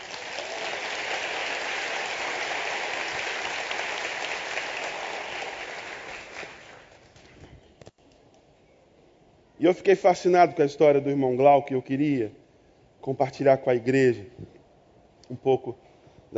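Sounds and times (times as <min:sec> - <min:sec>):
large crowd applauding: 0:00.0 - 0:07.4
speech: 0:09.6 - 0:12.4, 0:13.0 - 0:14.4, 0:15.3 - 0:16.3.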